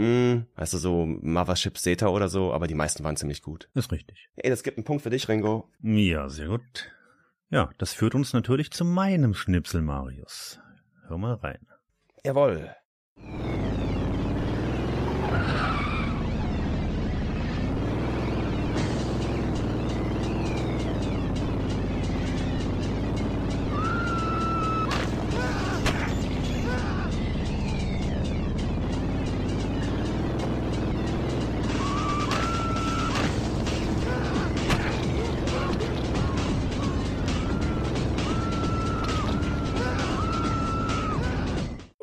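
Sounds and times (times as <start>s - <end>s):
speech: 0.0s - 13.7s
video game car driving: 13.2s - 41.9s
video game car crashing: 24.8s - 27.3s, 31.9s - 36.3s.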